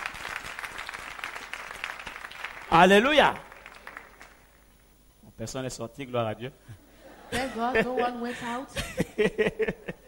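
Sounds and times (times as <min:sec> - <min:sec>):
church congregation applause during a service: 0:00.0 - 0:04.7
speech: 0:02.7 - 0:03.5, 0:05.4 - 0:10.0
laughter: 0:06.7 - 0:10.0.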